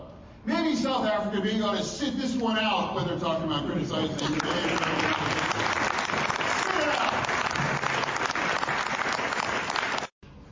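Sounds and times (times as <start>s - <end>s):
speech: 0.8s - 5.4s
audience applause: 4.2s - 10.1s.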